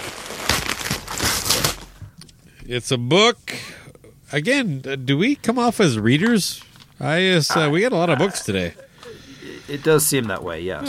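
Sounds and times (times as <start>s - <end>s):
wrapping paper crinkling as a present is opened: 0.0s - 2.1s
speech: 2.7s - 3.6s, 4.3s - 8.8s, 9.7s - 10.8s.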